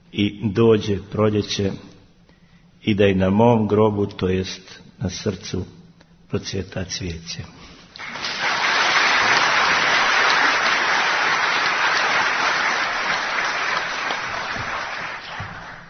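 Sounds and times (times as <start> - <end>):
speech: 0.1 - 1.9, 2.8 - 8.2
audience applause after a bishop reads his verses at an evening gathering: 8.0 - 15.8.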